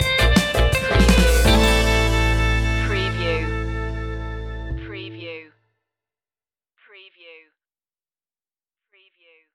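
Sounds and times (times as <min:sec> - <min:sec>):
Spanish tango music stinger: 0:00.2 - 0:05.2.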